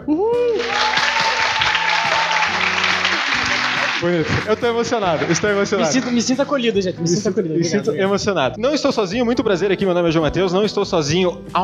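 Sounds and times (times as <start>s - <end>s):
audience applause: 0.5s - 6.4s
speech: 4.0s - 11.6s.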